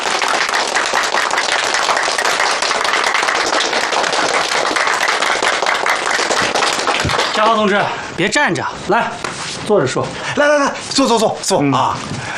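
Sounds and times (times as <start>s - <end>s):
group clapping in welcome for a newly arrived couple: 0.0s - 7.9s
speech: 7.4s - 12.3s.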